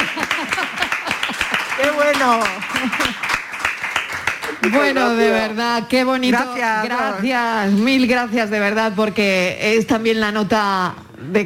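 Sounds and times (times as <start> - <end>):
laughter: 0.0 - 1.9, 2.6 - 3.2
applause: 0.0 - 5.3
speech: 2.0 - 3.2, 4.6 - 11.4.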